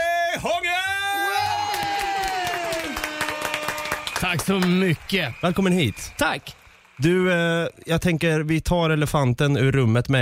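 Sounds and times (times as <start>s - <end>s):
crowd clapping and cheering: 1.0s - 8.1s
speech: 4.2s - 10.2s.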